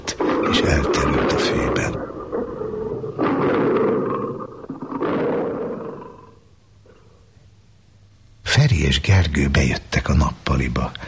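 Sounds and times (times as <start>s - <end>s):
lions growling while feeding on buffalo: 0.0s - 7.3s
speech: 9.0s - 11.0s.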